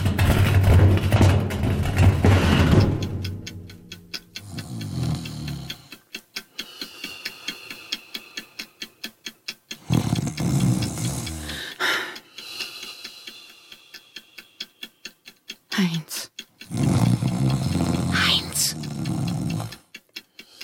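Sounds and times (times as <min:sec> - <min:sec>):
rhythmic ticking clicks: 0:00.0 - 0:20.6
loud snoring: 0:04.4 - 0:05.9, 0:09.8 - 0:11.9, 0:16.6 - 0:19.9.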